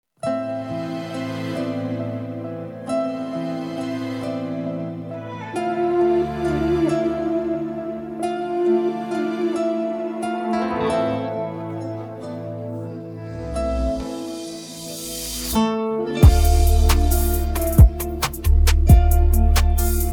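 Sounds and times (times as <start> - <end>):
instrumental music: 0.2 - 20.1.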